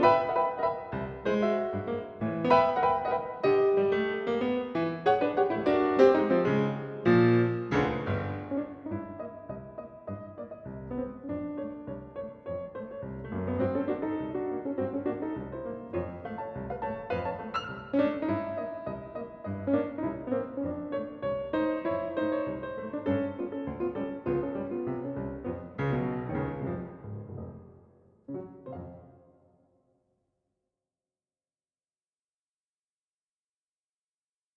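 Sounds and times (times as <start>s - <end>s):
piano piece: 0.0s - 29.7s.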